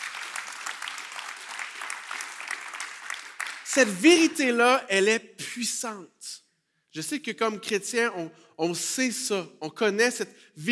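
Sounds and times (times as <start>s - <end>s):
audience applause: 0.0s - 3.8s
speech: 3.7s - 10.7s.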